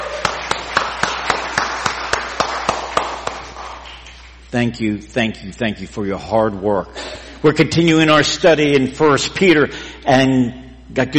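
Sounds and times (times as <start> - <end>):
audience applauding the choir: 0.0 - 4.3
speech: 4.5 - 11.1.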